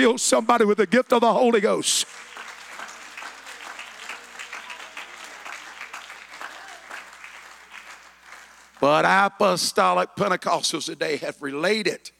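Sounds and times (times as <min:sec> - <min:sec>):
speech: 0:00.0 - 0:02.3, 0:08.8 - 0:12.1
audience clapping hands: 0:01.9 - 0:09.1.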